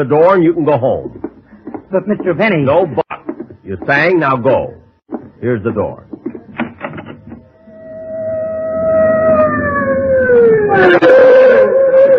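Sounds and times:
speech: 0.0 - 1.2, 1.9 - 3.0, 3.7 - 4.8, 5.4 - 6.2, 10.8 - 11.3
fire engine siren: 7.6 - 12.1.

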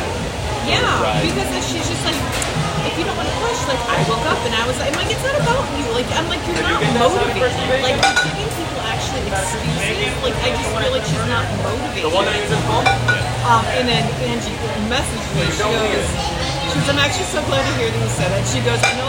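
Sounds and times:
light conversation from the cooks: 0.0 - 19.0
dishes and utensils clanging in a restaurant kitchen in Phoenix Arizona: 1.2 - 11.0, 11.6 - 13.7, 16.7 - 19.0.

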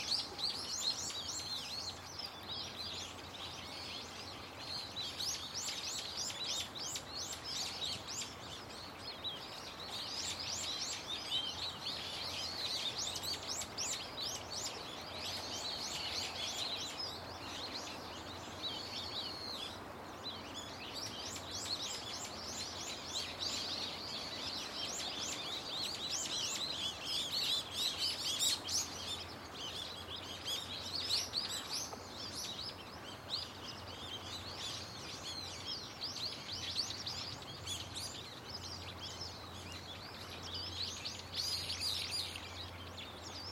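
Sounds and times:
bird chorus chirping: 0.0 - 43.5.

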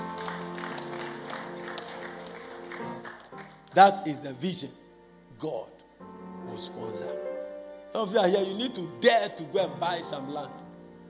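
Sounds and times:
audience clapping hands: 0.0 - 4.0
speech: 3.8 - 4.8, 5.4 - 5.8, 6.6 - 7.3, 7.9 - 10.6.

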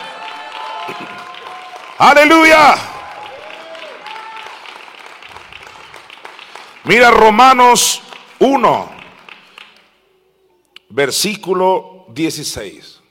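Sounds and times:
audience applause: 0.0 - 9.9
speech: 0.9 - 1.4, 2.0 - 2.9, 6.9 - 9.0, 10.9 - 12.9.

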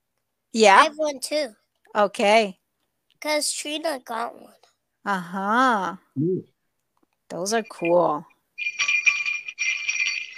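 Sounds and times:
speech: 0.5 - 2.6, 3.2 - 6.5, 7.3 - 8.9
Santa's bells ringing: 8.6 - 10.3.

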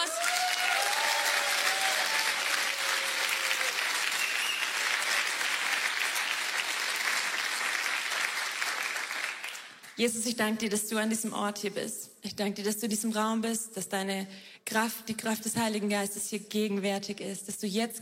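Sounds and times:
audience applause: 0.0 - 9.9
speech: 10.0 - 18.0.

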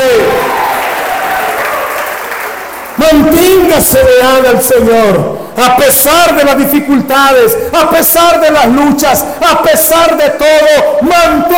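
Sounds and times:
congregation applause during a church service: 0.0 - 3.9
speech: 3.0 - 11.5.

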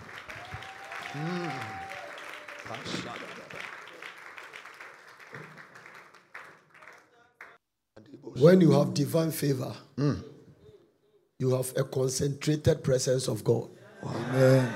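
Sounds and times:
audience clapping: 0.0 - 7.6, 14.5 - 14.7
speech: 1.1 - 1.8, 2.7 - 3.8, 8.4 - 10.3, 11.4 - 14.7.

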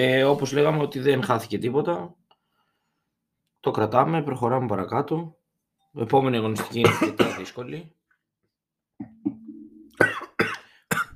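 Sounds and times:
speech: 0.0 - 2.2, 3.6 - 8.0
person coughing from choking on wine: 6.6 - 7.6, 9.9 - 11.1.

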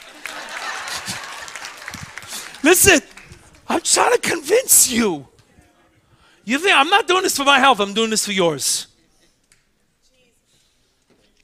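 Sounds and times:
audience applause: 0.0 - 4.8
laughter: 0.0 - 5.1
speech: 2.6 - 3.1, 3.8 - 5.3, 6.5 - 8.9.

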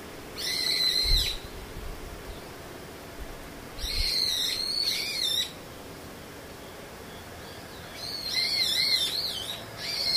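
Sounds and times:
steady low hiss: 0.0 - 10.1
bird high wavering buzzy trill call: 0.4 - 1.4, 3.8 - 5.6, 7.8 - 10.1.

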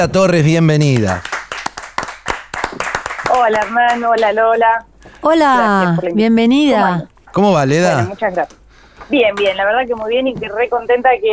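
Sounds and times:
speech: 0.0 - 1.3, 2.8 - 11.3
people clapping: 0.0 - 4.7.

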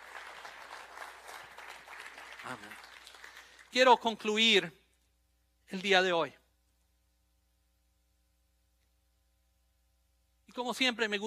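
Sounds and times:
audience applause: 0.0 - 3.7
speech: 2.5 - 2.9, 3.7 - 4.8, 5.7 - 6.4, 10.6 - 11.2.

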